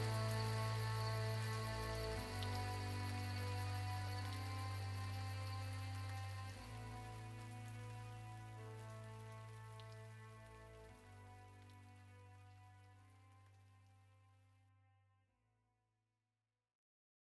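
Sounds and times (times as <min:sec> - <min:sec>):
dark mysterious ambience: 0:00.0 - 0:10.0.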